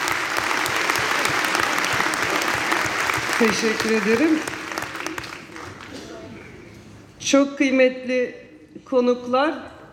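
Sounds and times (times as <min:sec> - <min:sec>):
audience applause: 0:00.0 - 0:06.1
speech: 0:03.4 - 0:04.6, 0:07.3 - 0:09.7.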